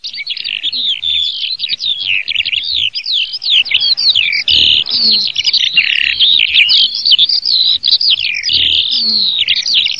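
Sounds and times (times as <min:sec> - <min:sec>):
Eurasian skylark song: 0:00.0 - 0:09.9.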